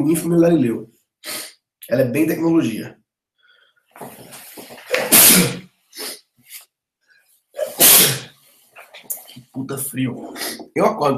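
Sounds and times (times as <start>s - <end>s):
speech: 0.0s - 3.0s, 9.6s - 11.1s
person sniffling: 5.0s - 6.6s, 7.6s - 8.5s.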